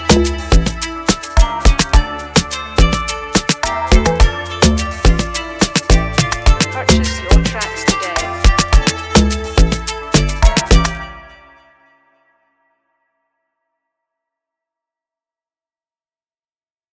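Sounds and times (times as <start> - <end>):
instrumental beat: 0.0 - 11.3.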